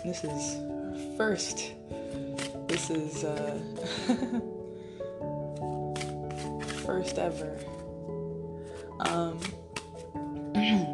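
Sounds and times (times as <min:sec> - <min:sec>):
speech: 0:00.0 - 0:04.6, 0:06.9 - 0:07.8, 0:09.0 - 0:09.6, 0:10.6 - 0:10.9
stack of cards being shuffled: 0:02.1 - 0:03.6, 0:05.5 - 0:07.9, 0:08.6 - 0:10.2.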